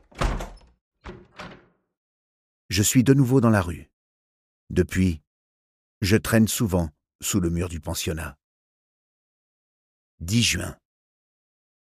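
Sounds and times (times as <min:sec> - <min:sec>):
door shut in someone's face: 0:00.0 - 0:01.8
latch and frame settling knocks: 0:00.0 - 0:01.8
speech: 0:02.7 - 0:03.9, 0:04.7 - 0:05.2, 0:06.0 - 0:08.4, 0:10.2 - 0:10.8.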